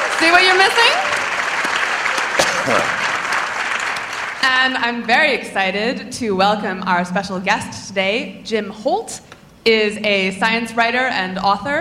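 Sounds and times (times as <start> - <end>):
audience applause: 0.0 - 4.5
speech: 0.2 - 1.0, 2.6 - 3.0, 4.4 - 11.7.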